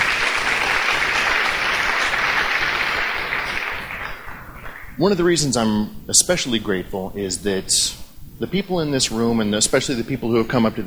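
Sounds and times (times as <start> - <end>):
audience applause: 0.0 - 5.0
speech: 5.0 - 10.8.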